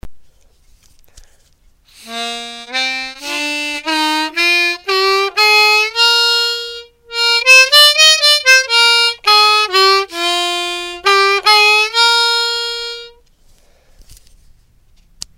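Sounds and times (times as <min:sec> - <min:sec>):
harmonica: 0:01.9 - 0:13.2.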